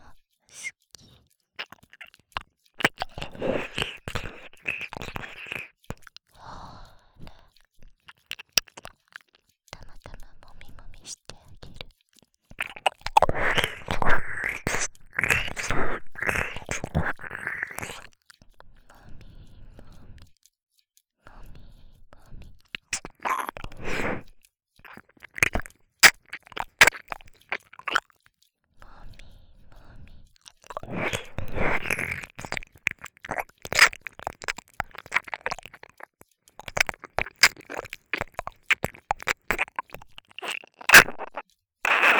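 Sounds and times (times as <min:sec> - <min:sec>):
faint breathy whispers: 0:00.1 - 0:02.2, 0:02.8 - 0:07.4, 0:12.6 - 0:18.1, 0:21.2 - 0:28.0, 0:28.8 - 0:42.1
wet ear licking mouth sounds: 0:00.1 - 0:11.9, 0:12.5 - 0:20.4, 0:21.3 - 0:42.1.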